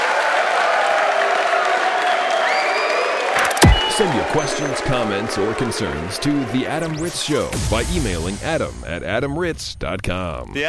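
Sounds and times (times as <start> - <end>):
audience applause: 0.0 - 3.4
speech: 4.0 - 10.6.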